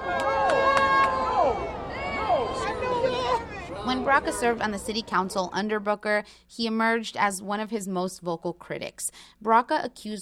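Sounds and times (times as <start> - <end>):
crowd booing: 0.0 - 4.8
speech: 4.0 - 10.2.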